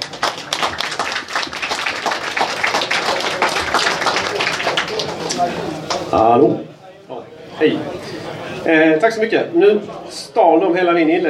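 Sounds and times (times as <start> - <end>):
audience applause: 0.0 - 6.1
speech: 6.2 - 6.7, 7.6 - 7.9, 8.6 - 11.2.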